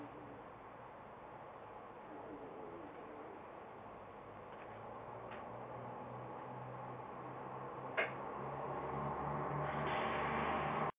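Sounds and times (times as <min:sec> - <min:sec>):
bus interior sounds: 0:02.8 - 0:10.9.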